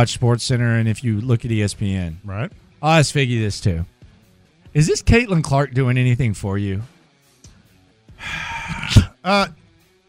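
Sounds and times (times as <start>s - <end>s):
speech: 0.0s - 4.0s, 4.7s - 6.9s, 8.2s - 9.6s
person taking a big deep breath: 8.2s - 8.9s.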